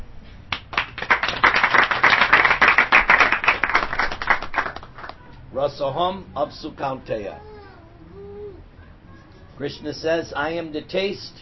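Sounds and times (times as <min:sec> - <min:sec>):
applause, hands clapping: 0:00.5 - 0:05.2
speech: 0:05.6 - 0:07.5, 0:09.6 - 0:11.4.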